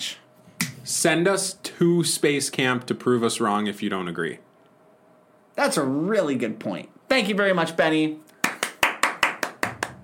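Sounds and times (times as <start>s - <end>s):
speech: 1.0s - 4.5s, 5.6s - 8.3s
small group applauding: 8.4s - 10.0s.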